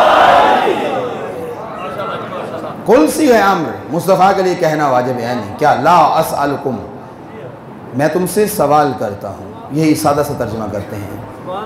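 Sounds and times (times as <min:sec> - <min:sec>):
crowd at a religious gathering shouting a slogan in unison: 0:00.0 - 0:01.5
speech: 0:02.9 - 0:06.9, 0:07.9 - 0:11.6.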